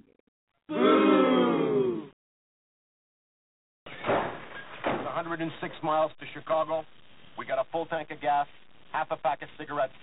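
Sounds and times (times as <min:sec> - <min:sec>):
person imitating a cheering stadium crowd: 0:00.7 - 0:02.2
speech: 0:05.4 - 0:10.0.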